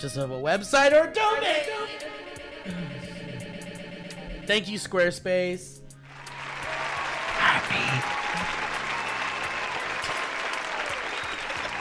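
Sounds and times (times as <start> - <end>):
speech: 0.0 - 3.1, 4.5 - 5.8
live studio audience applause: 6.0 - 11.7.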